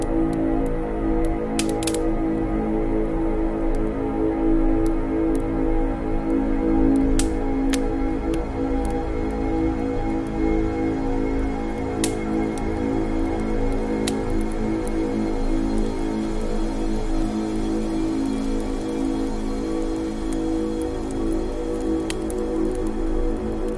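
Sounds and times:
fireplace hiss and low rumble: 0.0s - 23.7s.

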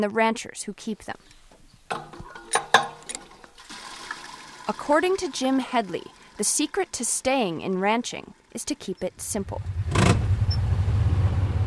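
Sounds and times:
speech: 0.0s - 2.1s, 4.7s - 9.8s
small farm tractor engine running: 2.0s - 11.6s.

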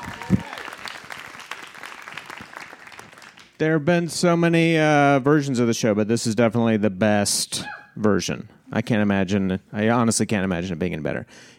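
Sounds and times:
people cheering in the crowd: 0.0s - 3.4s
audience applause: 0.0s - 3.6s
speech: 3.6s - 11.5s.

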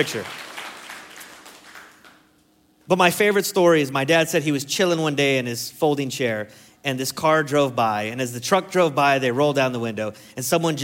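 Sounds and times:
speech: 0.0s - 0.5s, 2.9s - 10.8s
people clapping: 0.0s - 2.4s.

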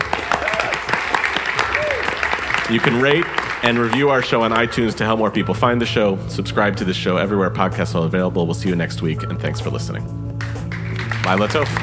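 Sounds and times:
audience applause: 0.0s - 5.0s, 10.7s - 11.8s
voices whooping: 0.1s - 1.0s, 1.6s - 2.4s
speech: 2.7s - 10.2s, 11.2s - 11.8s.

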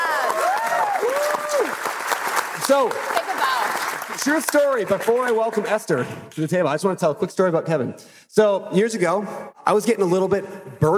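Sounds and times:
audience applause: 0.0s - 5.7s
speech: 2.7s - 3.2s, 4.2s - 10.9s.

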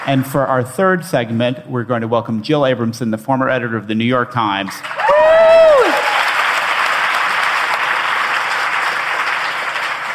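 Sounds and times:
speech: 0.0s - 5.0s
audience applauding: 4.7s - 10.1s.

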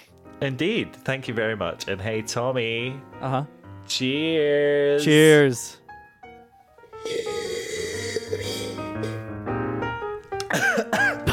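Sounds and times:
music: 0.0s - 11.3s
speech: 0.4s - 5.8s
person coughing after a drink went down wrong: 7.1s - 9.2s, 10.5s - 11.3s.

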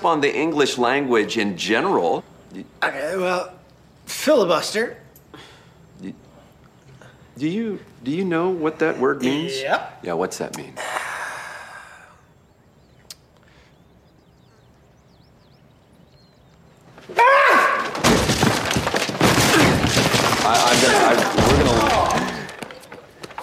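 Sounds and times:
speech: 0.0s - 5.4s, 6.0s - 6.2s, 7.4s - 11.0s
loud chaotic crashing and smashing: 17.6s - 22.7s.

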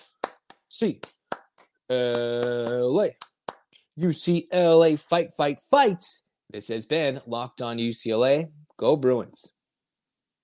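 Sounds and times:
rhythmic eight-count clapping: 0.0s - 3.7s
speech: 0.8s - 1.2s, 1.9s - 3.2s, 4.0s - 9.6s.

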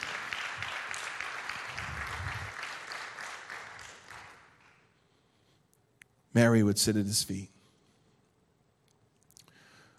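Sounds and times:
crowd clapping: 0.0s - 5.0s
speech: 6.4s - 7.6s.

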